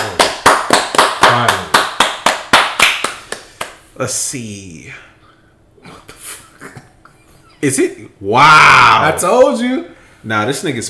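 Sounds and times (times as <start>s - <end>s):
hand clapping: 0.0s - 3.8s
speech: 4.0s - 5.1s, 7.6s - 10.8s.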